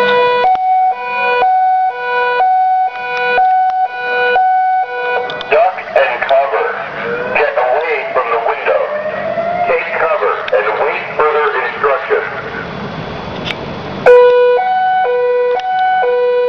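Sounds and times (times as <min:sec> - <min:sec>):
two-tone compound alarm siren: 0:00.0 - 0:10.7, 0:14.0 - 0:16.4
person talking: 0:05.4 - 0:09.0, 0:09.7 - 0:12.6.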